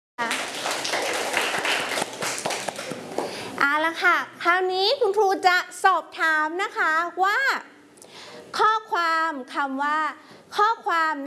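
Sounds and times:
children clapping for a classmate: 0.2 - 3.4
speech: 3.9 - 7.7, 8.4 - 11.2.

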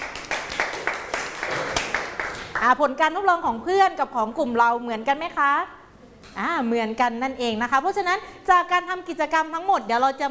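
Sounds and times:
classroom applause for a student group: 0.0 - 2.6
speech: 2.6 - 5.8, 6.4 - 10.2.

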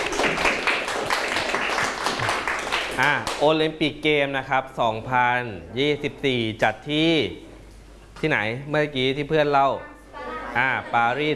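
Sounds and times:
classroom applause for a classmate: 0.0 - 3.5
speech: 3.0 - 7.5, 8.2 - 9.9, 10.6 - 11.3.

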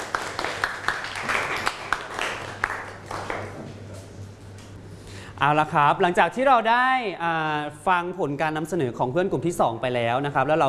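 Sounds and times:
classroom applause: 0.0 - 3.6
speech: 5.4 - 10.6.

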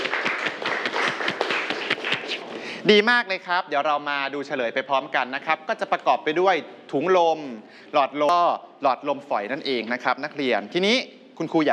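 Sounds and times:
classroom students clapping for a classmate's correct answer: 0.0 - 2.6
speech: 2.8 - 11.7.

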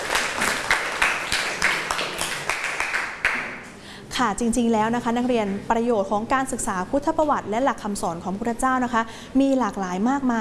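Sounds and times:
classroom applause: 0.0 - 3.7
speech: 4.2 - 10.3.

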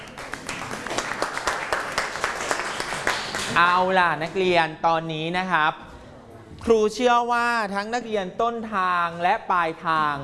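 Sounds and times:
applause: 0.0 - 3.7
speech: 3.6 - 5.8, 6.6 - 10.2.

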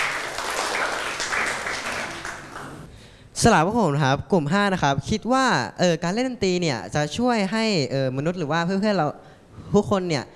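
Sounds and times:
classroom group clapping: 0.0 - 2.9
speech: 3.4 - 10.3.

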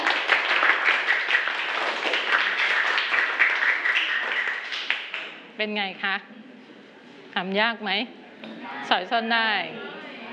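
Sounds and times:
students applauding: 0.0 - 5.4
speech: 5.6 - 6.4, 7.4 - 9.8.

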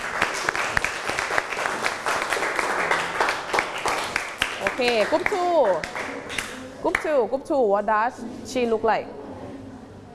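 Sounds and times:
classroom clapping hands: 0.0 - 7.1
speech: 4.8 - 6.0, 6.8 - 9.2.

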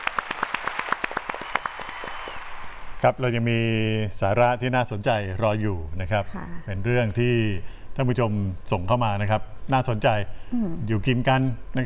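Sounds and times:
audience applause: 0.0 - 2.8
speech: 3.0 - 11.8.

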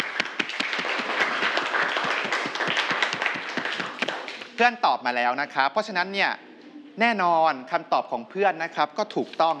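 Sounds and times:
students clapping: 0.0 - 4.7
speech: 4.6 - 6.4, 7.0 - 9.5.

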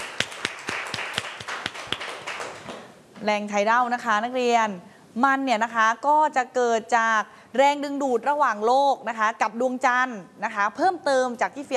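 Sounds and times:
classroom clapping: 0.0 - 2.9
speech: 3.2 - 11.7.

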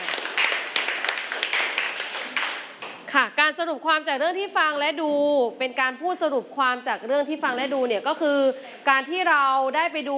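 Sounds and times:
classroom group clapping hands: 0.0 - 3.1
speech: 3.1 - 10.1.

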